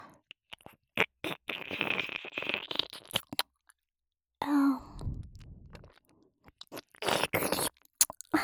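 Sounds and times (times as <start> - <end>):
ear licking on the right ear: 0.5 - 3.5, 6.7 - 8.3.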